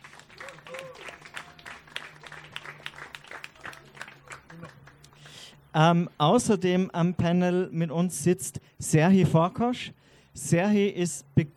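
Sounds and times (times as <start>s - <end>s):
audience applause: 0.0s - 5.5s
speech: 5.8s - 11.5s.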